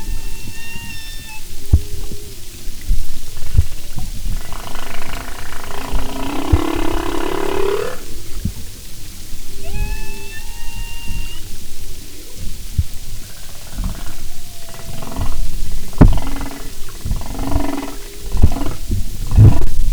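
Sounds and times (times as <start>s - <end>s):
humpback whale moaning: 0.0s - 2.4s, 3.4s - 8.4s, 9.6s - 11.6s, 13.2s - 19.7s
heavy low rumbling noise: 0.0s - 19.9s.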